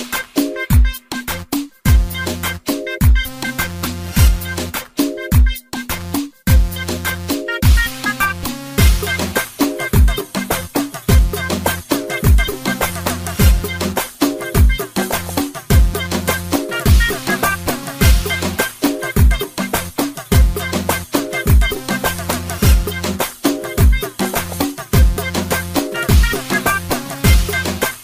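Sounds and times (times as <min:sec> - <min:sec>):
Arabic ringtone melody: 0:00.0 - 0:28.0.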